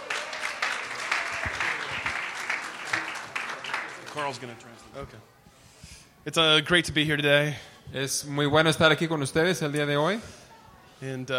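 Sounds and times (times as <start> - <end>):
church congregation applauding during an ordination service in McAllen: 0.0 - 5.0
speech: 4.2 - 5.4, 6.2 - 10.4, 11.0 - 11.3.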